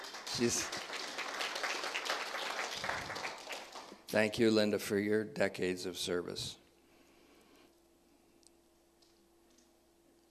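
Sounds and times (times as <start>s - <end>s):
audience clapping: 0.0s - 4.2s
speech: 0.4s - 0.8s, 4.1s - 6.6s.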